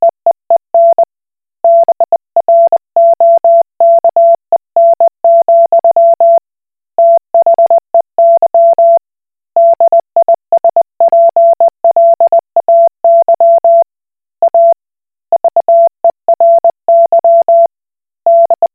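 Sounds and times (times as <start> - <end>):
Koch Morse code beeps: 0.8 - 1.1, 1.7 - 6.4, 7.0 - 9.0, 9.6 - 13.8, 14.4 - 14.8, 15.4 - 17.7, 18.3 - 18.7.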